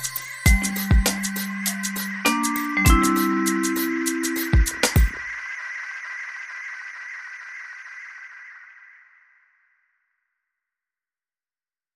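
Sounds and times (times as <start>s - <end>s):
trip vibraphone: 0.5s - 5.2s.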